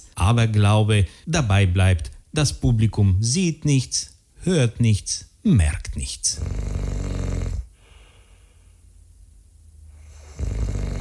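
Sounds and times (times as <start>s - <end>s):
speech: 0.3s - 6.6s
loud rasping snoring: 6.3s - 7.7s, 10.0s - 10.9s.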